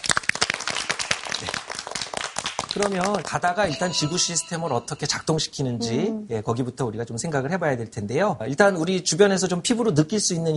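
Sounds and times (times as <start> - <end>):
applause: 0.0 - 3.9
speech: 2.8 - 10.5.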